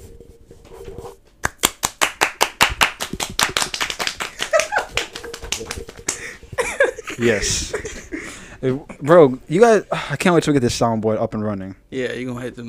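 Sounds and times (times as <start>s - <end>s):
hand clapping: 1.4s - 6.4s
laughter: 4.3s - 8.4s
speech: 7.2s - 7.8s, 8.6s - 12.6s.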